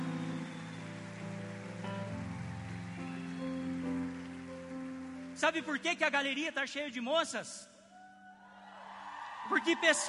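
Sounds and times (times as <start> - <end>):
audience applauding: 0.0 - 6.0, 8.7 - 10.0
speech: 5.4 - 7.7, 9.5 - 10.0.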